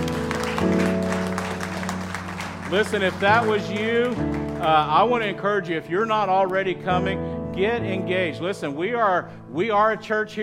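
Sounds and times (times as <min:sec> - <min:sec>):
audience hand clapping: 0:00.0 - 0:05.2
speech: 0:02.7 - 0:10.4.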